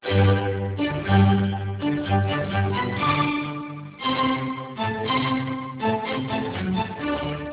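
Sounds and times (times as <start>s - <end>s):
music: 0.0s - 7.5s.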